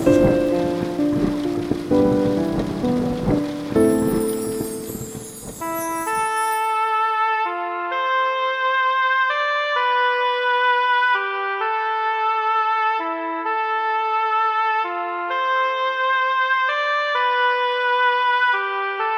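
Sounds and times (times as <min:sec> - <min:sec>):
rain pouring: 0:00.0 - 0:07.4
soft melodic music: 0:00.0 - 0:19.1.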